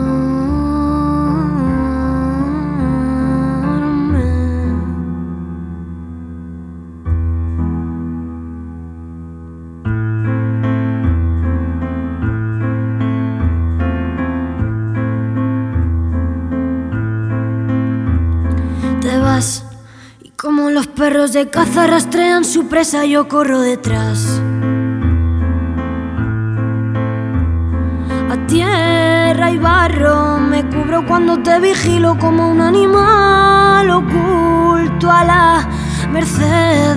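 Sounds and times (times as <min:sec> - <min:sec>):
voice: 0:00.0 - 0:05.0, 0:18.8 - 0:24.5, 0:28.3 - 0:36.9
piano: 0:00.0 - 0:36.9.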